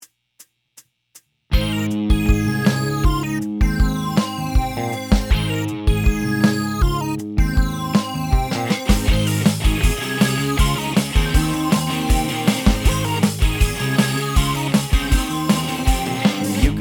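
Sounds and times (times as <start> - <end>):
MIDI music version: 1.6 - 16.7.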